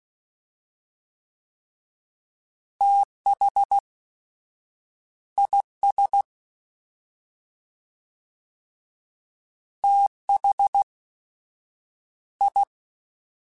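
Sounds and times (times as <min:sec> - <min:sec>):
fast CW Morse code groups: 0:02.8 - 0:03.8, 0:05.4 - 0:06.3, 0:09.9 - 0:10.9, 0:12.4 - 0:12.7.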